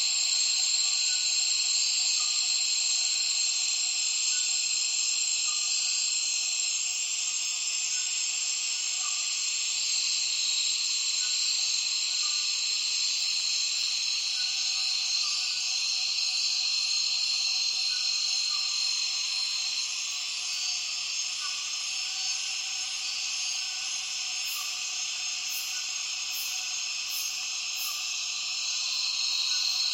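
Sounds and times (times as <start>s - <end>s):
massed cicada chorus: 0.0s - 29.9s.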